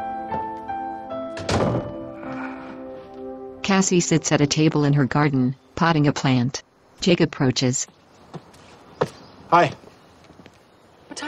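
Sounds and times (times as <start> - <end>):
soft sustained music tones: 0.0 - 6.5
front door closing: 1.3 - 2.1
speech: 3.7 - 8.4, 9.5 - 9.8.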